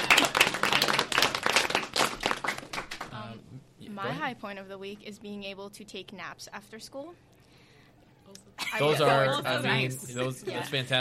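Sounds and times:
round of applause from a small group: 0.0s - 3.2s
speech: 4.0s - 7.3s, 8.7s - 10.9s.

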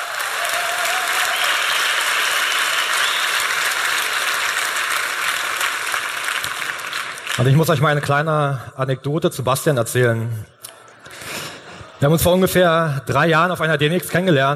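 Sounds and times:
crowd applause: 0.0s - 8.1s
speech: 7.4s - 10.6s, 12.0s - 14.5s.

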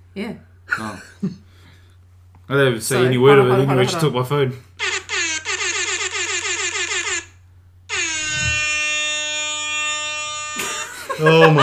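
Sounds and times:
speech: 0.2s - 1.4s, 2.5s - 4.7s, 11.2s - 11.6s
laughter: 3.0s - 4.2s, 10.6s - 11.6s
buzzer alarm: 4.8s - 11.6s.

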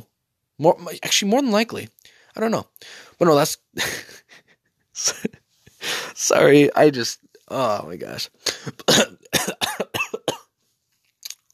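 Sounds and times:
speech: 0.6s - 4.2s, 5.0s - 9.6s
person coughing after choking on saliva: 8.5s - 10.5s.

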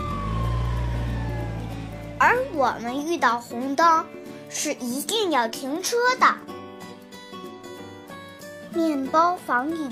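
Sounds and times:
fire engine siren: 0.0s - 2.8s
speech: 2.2s - 6.6s, 8.7s - 9.9s.

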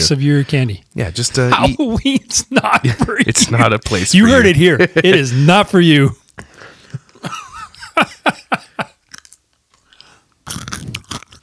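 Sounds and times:
speech: 0.0s - 6.2s, 8.0s - 8.6s
chewing Halloween candy: 9.0s - 11.4s.

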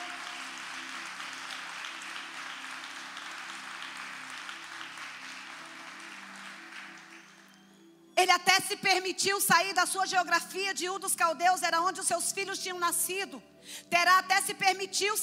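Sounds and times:
audience applauding: 0.0s - 7.9s
speech: 8.2s - 15.2s.

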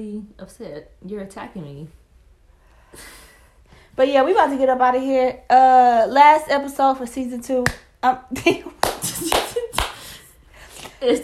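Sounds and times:
speech: 0.0s - 2.0s, 2.9s - 3.2s, 4.0s - 8.9s, 11.0s - 11.2s
hand clapping: 7.6s - 7.9s, 8.8s - 10.2s.

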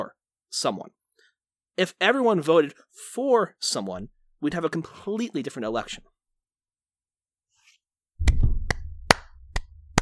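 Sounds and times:
speech: 0.0s - 1.0s, 1.8s - 6.1s
hand accidentally hitting the microphone: 8.2s - 9.9s
person clapping: 8.2s - 9.9s.

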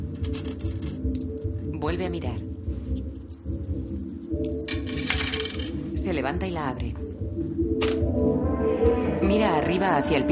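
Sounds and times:
coins clinking as they are counted on a table: 0.0s - 1.5s, 2.9s - 5.8s
speech: 1.8s - 2.5s, 6.0s - 7.0s, 7.7s - 10.3s.

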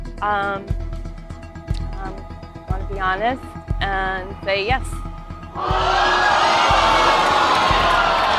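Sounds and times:
speech: 0.2s - 0.8s, 2.9s - 7.2s
quiz show studio audience groaning in dismay: 5.6s - 8.3s.

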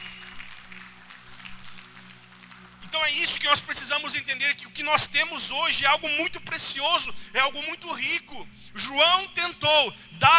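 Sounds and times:
audience applauding: 0.0s - 3.7s
speech: 3.0s - 10.3s.

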